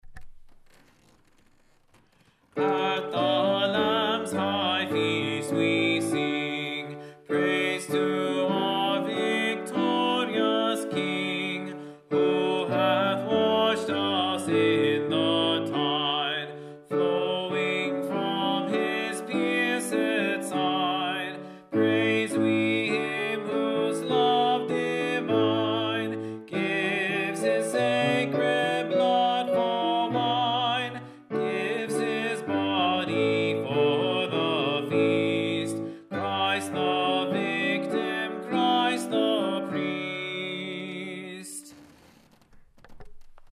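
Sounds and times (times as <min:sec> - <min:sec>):
tenor singing: 0:02.6 - 0:41.8.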